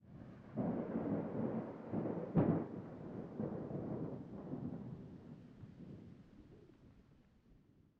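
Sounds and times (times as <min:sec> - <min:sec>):
distant thunder: 0:00.5 - 0:06.2.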